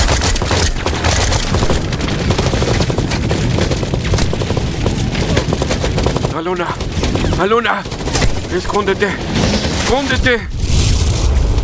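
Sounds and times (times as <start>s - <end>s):
suppressive gunfire barrage of overlapping shots and machine-gun bursts: 0.0s - 11.6s
speech: 6.4s - 10.6s.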